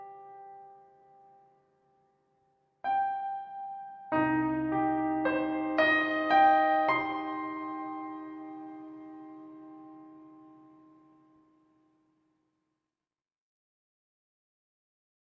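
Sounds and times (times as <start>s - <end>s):
piano: 0.0s - 12.0s.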